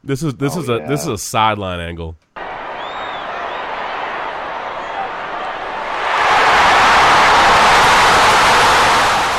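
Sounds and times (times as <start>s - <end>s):
speech: 0.0s - 2.3s
loud stadium crowd roaring: 2.4s - 9.3s.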